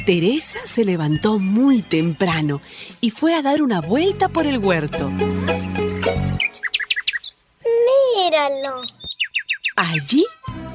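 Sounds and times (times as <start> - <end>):
speech: 0.0 - 5.8, 8.3 - 9.0, 9.8 - 10.7
little bird chirping in a vegetable garden among lettuces: 5.9 - 7.5, 8.4 - 10.4.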